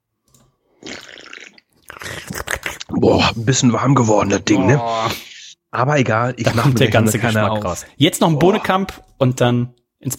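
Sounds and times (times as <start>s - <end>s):
person sipping and gulping from a bottle of beer: 0.8s - 3.0s
speech: 3.0s - 10.1s.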